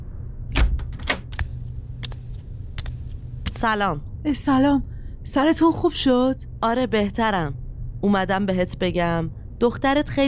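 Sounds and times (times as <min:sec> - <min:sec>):
low steady rumble: 0:00.0 - 0:10.2
door opening latch clicks and knocks in a spoken drama: 0:00.5 - 0:01.3
speech: 0:03.6 - 0:10.2.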